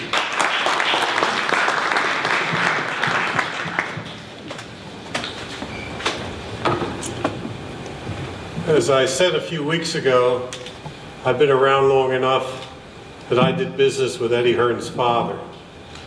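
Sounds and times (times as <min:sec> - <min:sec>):
crowd applause: 0:00.0 - 0:04.4
speech: 0:08.8 - 0:10.6, 0:11.2 - 0:12.6, 0:13.3 - 0:15.5.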